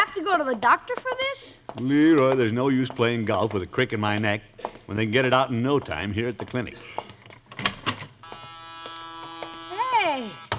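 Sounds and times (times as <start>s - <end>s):
speech: 0.2s - 7.8s
door buzzer: 8.2s - 10.5s.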